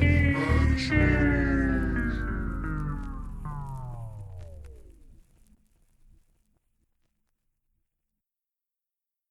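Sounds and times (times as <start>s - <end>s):
remix music: 0.0s - 5.3s.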